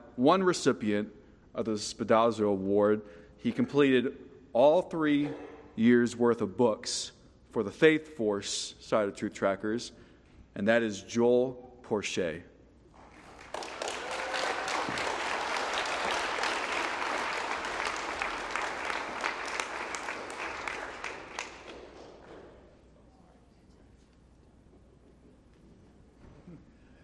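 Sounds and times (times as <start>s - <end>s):
speech: 0.2s - 10.0s, 10.6s - 12.5s
audience applause: 13.0s - 22.4s.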